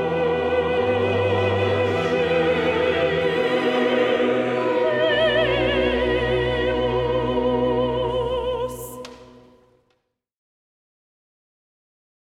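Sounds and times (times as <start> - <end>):
orchestra playing: 0.0 - 9.5
solo singers: 0.0 - 9.6.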